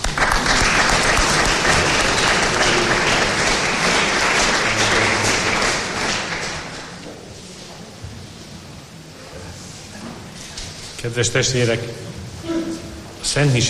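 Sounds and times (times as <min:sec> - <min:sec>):
audience applauding: 0:00.0 - 0:07.0
speech: 0:11.1 - 0:12.2, 0:13.3 - 0:13.6.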